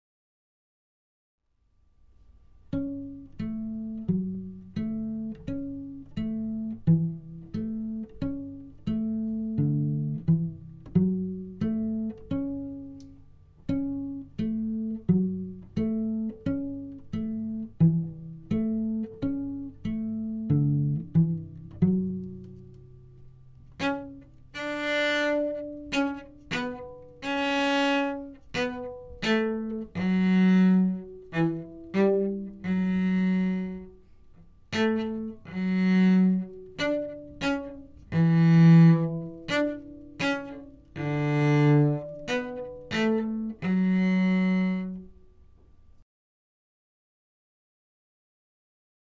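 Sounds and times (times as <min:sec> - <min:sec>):
cello: 0:02.6 - 0:45.6.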